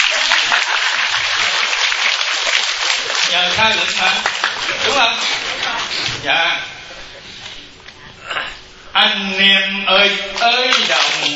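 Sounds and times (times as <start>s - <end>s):
practitioners applauding in a Buddhist Pure Land retreat hall: 0.0s - 5.9s, 10.7s - 11.3s
speech: 3.4s - 6.7s, 9.0s - 11.3s.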